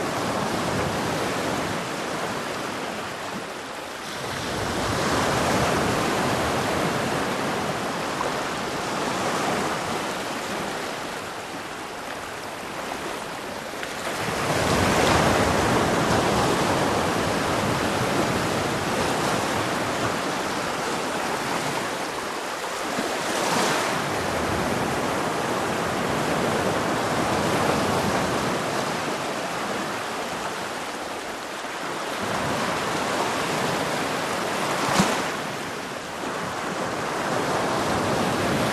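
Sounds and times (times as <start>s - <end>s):
gentle rolling waves on a black sand beach: 0.0s - 38.7s.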